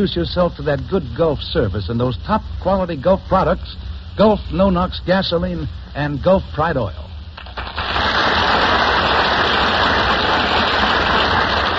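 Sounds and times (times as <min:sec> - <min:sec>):
speech: 0:00.0 - 0:07.7
Gulf Theater studio audience applause: 0:07.5 - 0:11.7.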